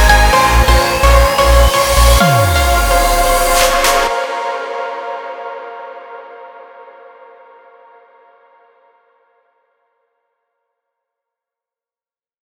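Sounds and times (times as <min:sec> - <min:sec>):
dark progressive house music: 0:00.0 - 0:06.6.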